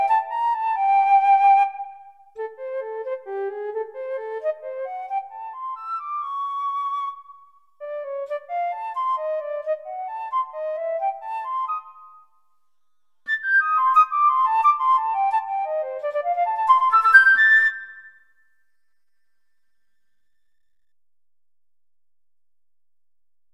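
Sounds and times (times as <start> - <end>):
tango flute melody: 0.0 - 12.4, 13.3 - 18.4.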